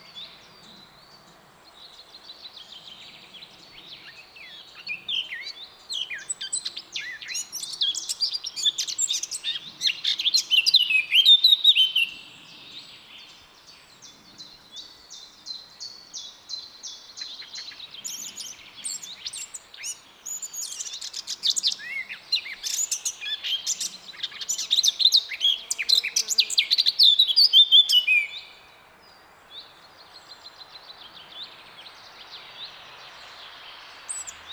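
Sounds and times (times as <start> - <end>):
Eurasian blackcap song: 0.0 - 28.6, 29.5 - 34.5.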